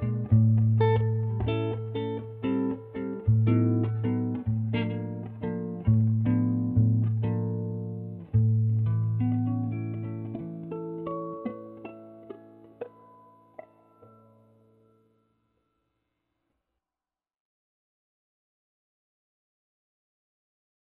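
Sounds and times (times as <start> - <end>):
solo jazz guitar improvisation: 0.0 - 14.1.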